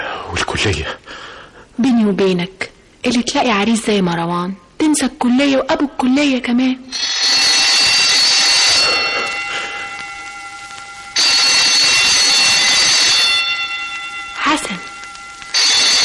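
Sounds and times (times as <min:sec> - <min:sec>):
speech: 0:00.6 - 0:07.1
exam bell ringing: 0:06.9 - 0:16.0.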